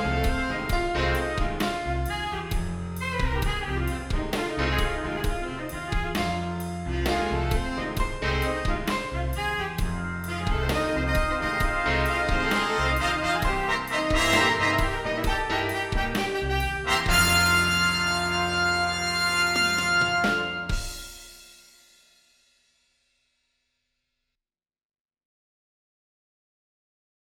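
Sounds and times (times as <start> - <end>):
horns in fifths: 0.0 - 21.4.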